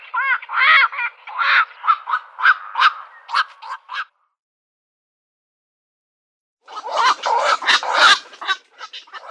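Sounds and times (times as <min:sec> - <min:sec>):
black-crowned night heron croaking squawks: 0:00.1 - 0:04.2, 0:06.7 - 0:09.3.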